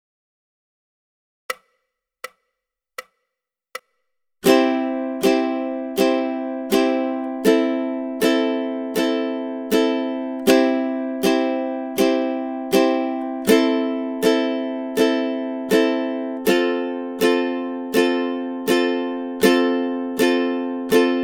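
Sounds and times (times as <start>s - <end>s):
ukulele rhythm study: 4.4s - 21.2s.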